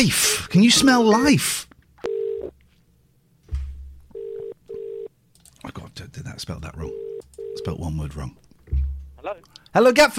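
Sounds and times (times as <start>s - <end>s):
speech: 0.0s - 1.7s, 6.4s - 8.4s, 9.2s - 10.1s
telephone ringing tones as a call is placed: 2.0s - 2.5s, 4.1s - 5.1s, 6.9s - 7.8s.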